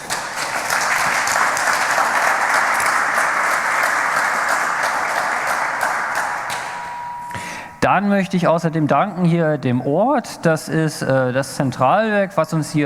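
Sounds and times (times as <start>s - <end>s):
audience applause: 0.0s - 6.9s
speech: 7.9s - 12.8s.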